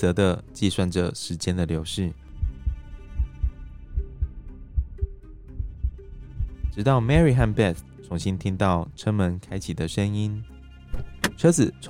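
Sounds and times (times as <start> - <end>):
speech: 0.0 - 2.2, 6.8 - 11.8
heartbeat: 2.3 - 7.6.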